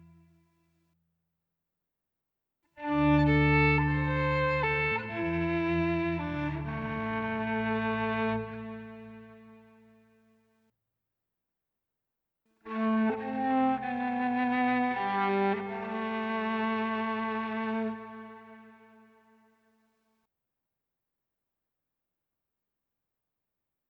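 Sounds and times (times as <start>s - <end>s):
instrumental music soundscape: 2.8s - 9.6s, 12.7s - 18.9s.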